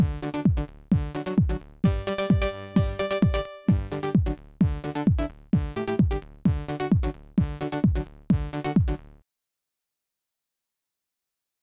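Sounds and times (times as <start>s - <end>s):
light upbeat digital pop music in F: 0.0s - 9.0s.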